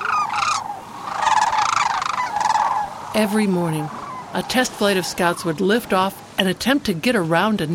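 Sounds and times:
flock of sandhill cranes calling: 0.0 - 5.8
speech: 3.1 - 7.7.

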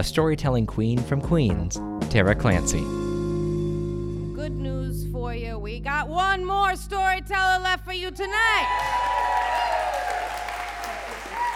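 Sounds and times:
speech: 0.0 - 3.1, 4.4 - 9.2
live audience clapping: 8.6 - 11.5.

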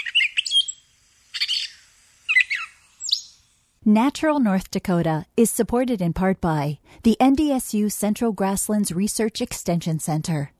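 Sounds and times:
gray catbird calls: 0.0 - 3.5
speech: 3.8 - 10.5.

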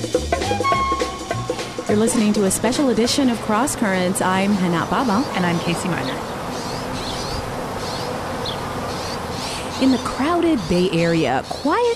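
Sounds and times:
honeybees buzzing: 0.6 - 11.9
speech: 1.9 - 6.3, 9.8 - 11.9
faint high bird chirps: 4.9 - 11.9.

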